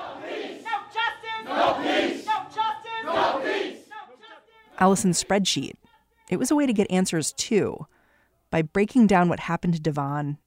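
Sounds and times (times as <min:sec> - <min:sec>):
crowd chanting at police: 0:00.0 - 0:06.2
speech: 0:04.8 - 0:10.4.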